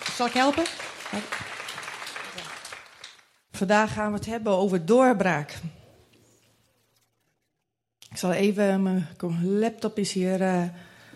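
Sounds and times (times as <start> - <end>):
audience applause: 0.0 - 3.4
speech: 0.2 - 1.5, 3.6 - 5.7, 8.2 - 10.9.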